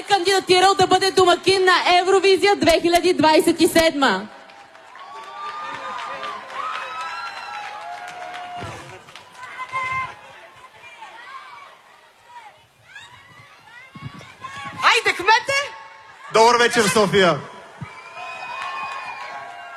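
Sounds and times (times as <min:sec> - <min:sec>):
speech: 0:00.1 - 0:04.4, 0:16.6 - 0:17.5
audience applause and cheering: 0:04.4 - 0:11.6, 0:17.6 - 0:19.7.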